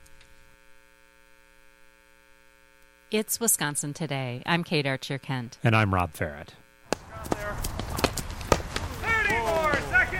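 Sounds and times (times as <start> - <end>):
speech: 3.1 - 6.6
hurling players running feet: 6.9 - 10.1.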